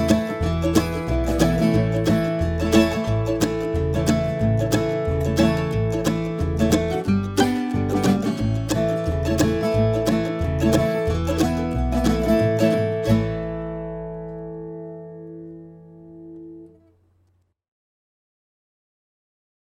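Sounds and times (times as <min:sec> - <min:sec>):
rhythm at 180 BPM: 0:00.0 - 0:13.7.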